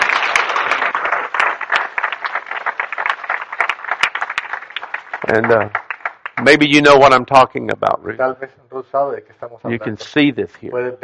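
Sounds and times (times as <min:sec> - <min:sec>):
congregation applause in a church service: 0:00.0 - 0:07.2
speech: 0:05.3 - 0:05.8, 0:06.4 - 0:11.0.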